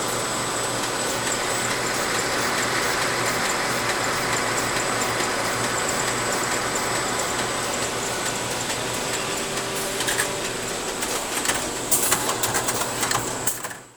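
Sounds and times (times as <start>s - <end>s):
office ambience: 0.1s - 13.7s.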